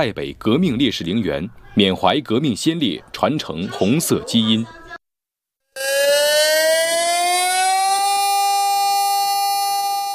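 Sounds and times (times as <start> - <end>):
speech: 0.0 - 4.8
air raid siren wailing: 5.8 - 10.1.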